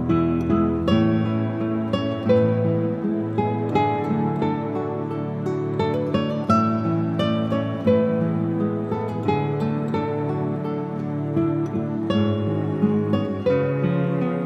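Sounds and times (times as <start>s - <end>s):
acoustic instrumental praise music: 0.0s - 14.4s.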